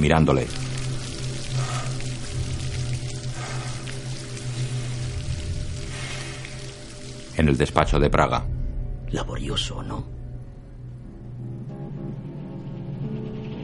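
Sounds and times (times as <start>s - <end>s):
speech: 0.0s - 0.8s, 7.4s - 8.5s, 9.1s - 10.1s
water overflowing and splashing onto a body: 0.0s - 7.8s.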